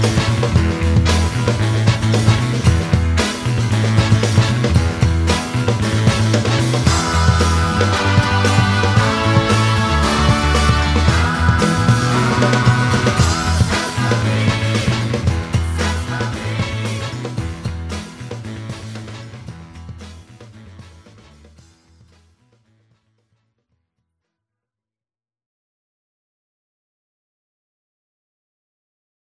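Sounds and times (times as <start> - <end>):
guitar backing tracks: 0.0 - 21.7.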